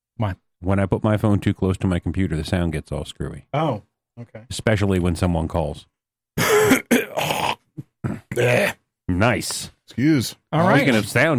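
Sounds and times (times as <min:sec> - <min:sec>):
speech: 0:00.2 - 0:11.3
throat clearing: 0:06.4 - 0:08.8.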